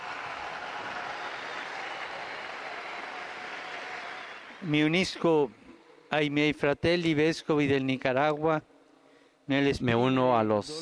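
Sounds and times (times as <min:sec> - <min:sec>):
crowd applause: 0:00.0 - 0:05.4
speech: 0:04.6 - 0:08.7, 0:09.5 - 0:10.8.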